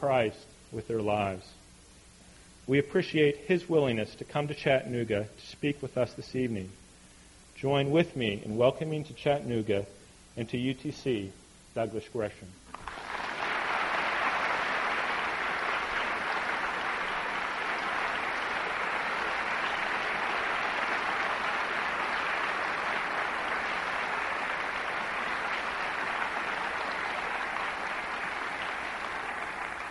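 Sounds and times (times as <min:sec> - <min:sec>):
speech: 0:00.0 - 0:01.6, 0:02.7 - 0:06.8, 0:07.6 - 0:13.0
audience applause: 0:12.7 - 0:29.8.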